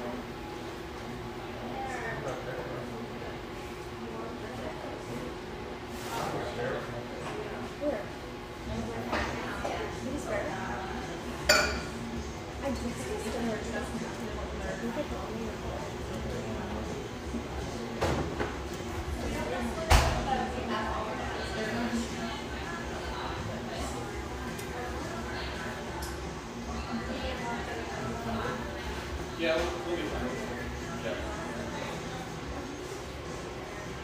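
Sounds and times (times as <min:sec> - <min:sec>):
murmur of overlapping voices in a coffeeshop: 0:00.0 - 0:34.0
cups and dishes clinking: 0:11.4 - 0:12.0.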